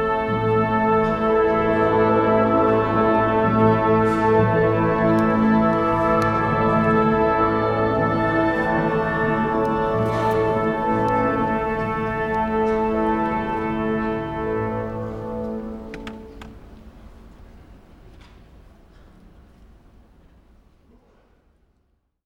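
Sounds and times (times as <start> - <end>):
orchestra tuning: 0.0 - 17.3.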